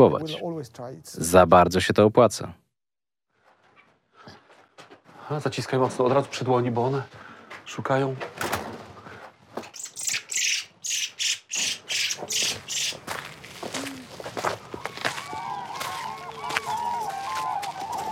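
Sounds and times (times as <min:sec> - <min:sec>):
speech: 0:00.0 - 0:02.6, 0:05.3 - 0:08.5
cranes and larks calling in the field: 0:09.6 - 0:13.2, 0:15.8 - 0:18.0
rhythmic crunching footsteps: 0:11.6 - 0:18.0.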